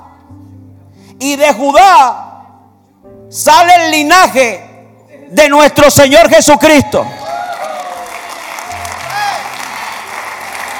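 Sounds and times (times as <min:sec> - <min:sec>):
speech: 0:01.2 - 0:02.3, 0:03.3 - 0:04.7, 0:05.3 - 0:07.2
audience applause: 0:07.2 - 0:10.7.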